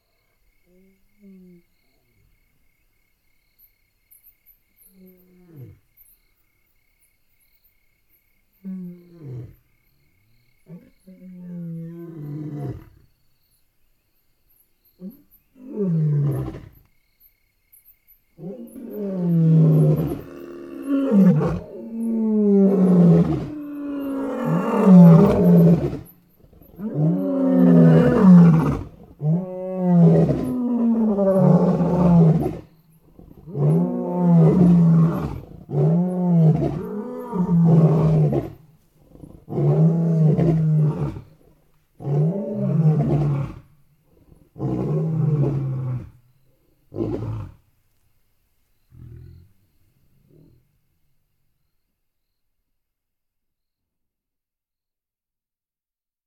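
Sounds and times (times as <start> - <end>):
roar: 4.8 - 6.0, 8.6 - 13.1, 15.0 - 16.9, 18.4 - 47.7, 48.8 - 50.9.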